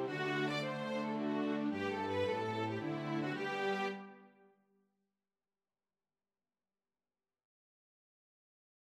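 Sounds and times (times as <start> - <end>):
ensemble playing a waltz: 0.0 - 4.2.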